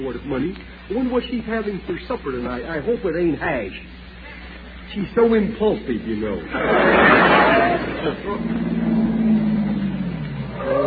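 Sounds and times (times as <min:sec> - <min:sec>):
speech: 0:00.0 - 0:04.0, 0:04.9 - 0:09.0
laughter: 0:06.4 - 0:09.2
car approaching: 0:08.0 - 0:10.8.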